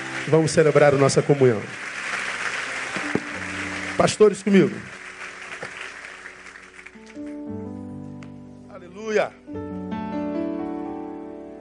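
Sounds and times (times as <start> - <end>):
audience applauding: 0.0 - 7.5
speech: 0.2 - 1.9, 4.0 - 5.0.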